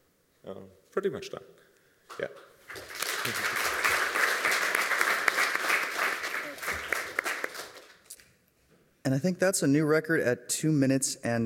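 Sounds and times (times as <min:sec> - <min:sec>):
speech: 0:00.4 - 0:03.7, 0:09.1 - 0:11.4
audience applause: 0:02.7 - 0:08.0.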